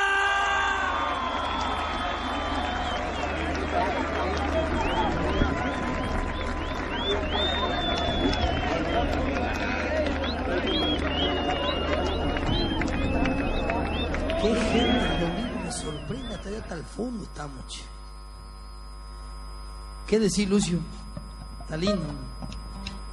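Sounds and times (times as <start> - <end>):
audience applause: 0.2 - 16.9
speech: 16.6 - 18.0, 20.1 - 21.0, 21.7 - 22.3.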